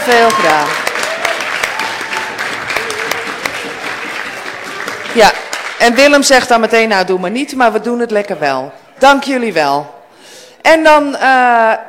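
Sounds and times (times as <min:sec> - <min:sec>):
speech: 0:00.0 - 0:00.8, 0:05.2 - 0:10.0, 0:10.6 - 0:11.8
audience applause: 0:00.0 - 0:05.9.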